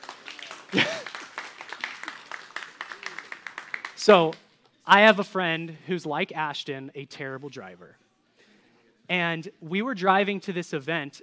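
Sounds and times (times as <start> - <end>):
audience applause: 0.0 - 4.1
speech: 4.0 - 8.0, 9.1 - 11.2.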